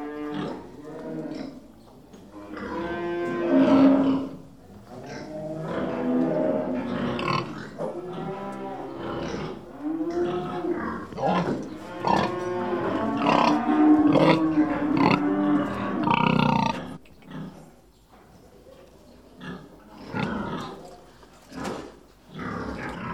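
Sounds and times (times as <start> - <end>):
cows mooing: 0.0 - 1.6, 2.4 - 4.4, 5.1 - 17.0
pig grunting: 2.5 - 17.7, 19.4 - 23.1.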